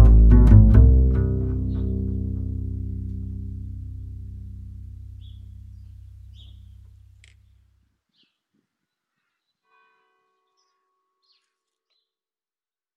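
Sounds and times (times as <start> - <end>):
solo melody: 0.0 - 6.9.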